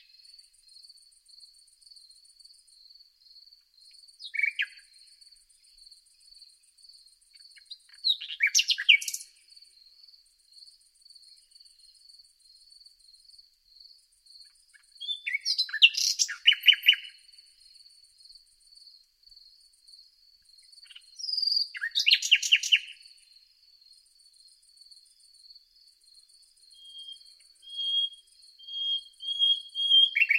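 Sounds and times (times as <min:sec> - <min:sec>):
Common nightingale song of chirps and whistles: 0:04.2 - 0:05.1, 0:07.4 - 0:09.4, 0:14.8 - 0:17.2, 0:20.8 - 0:23.2, 0:26.6 - 0:30.3.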